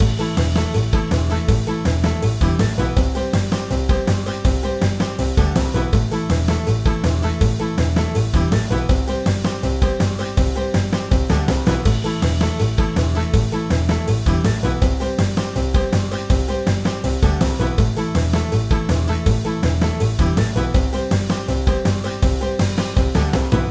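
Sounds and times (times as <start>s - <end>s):
backing music: 0.0s - 23.6s.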